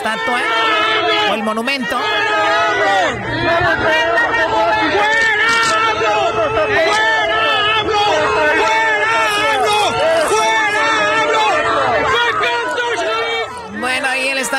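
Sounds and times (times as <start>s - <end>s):
crowd shouting at the Benito Juárez monument: 0.0s - 14.5s
speech: 0.1s - 5.3s, 6.0s - 7.2s.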